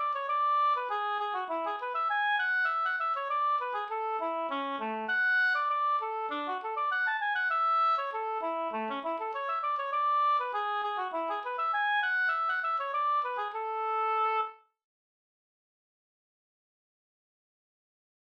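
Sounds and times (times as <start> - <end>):
walking tune in A major: 0.0 - 14.6.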